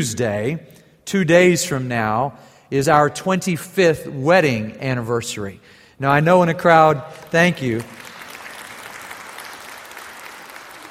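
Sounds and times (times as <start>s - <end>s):
speech: 0.0s - 8.0s
audience applause: 7.8s - 10.8s.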